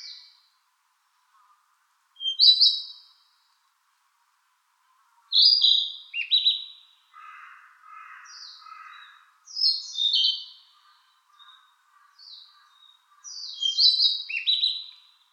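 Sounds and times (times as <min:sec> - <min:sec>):
bird buzzy descending song: 0:02.2 - 0:03.5, 0:05.3 - 0:07.0, 0:08.2 - 0:15.3.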